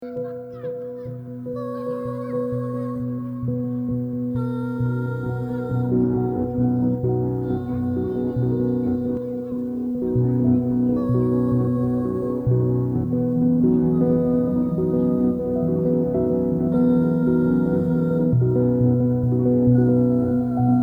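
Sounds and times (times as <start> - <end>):
piano: 0.0 - 20.8.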